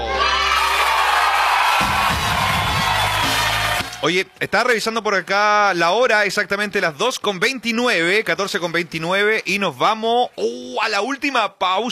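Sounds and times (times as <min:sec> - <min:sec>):
dense continuous applause: 0:00.0 - 0:04.6
large crowd cheering with whoops and shouts: 0:00.0 - 0:05.5
speech: 0:04.0 - 0:11.9.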